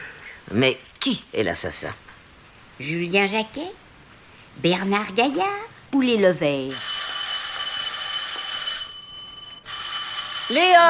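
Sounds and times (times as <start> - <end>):
speech: 0.5 - 2.1, 2.8 - 3.8, 4.6 - 6.9, 10.5 - 10.8
telephone ringing: 6.7 - 10.8.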